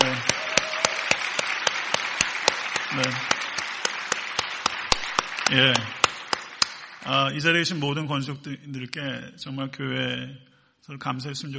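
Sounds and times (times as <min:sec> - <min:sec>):
audience applause: 0:00.0 - 0:07.5
speech: 0:05.5 - 0:06.0, 0:07.0 - 0:11.5.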